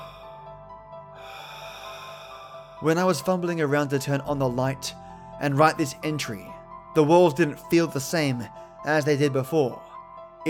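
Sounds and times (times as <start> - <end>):
heavy breathing sound effect: 0.0 - 3.3
speech: 2.8 - 10.4.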